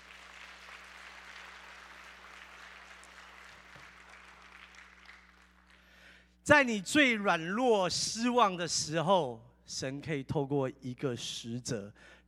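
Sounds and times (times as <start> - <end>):
audience clapping: 0.0 - 6.2
speech: 6.5 - 12.2.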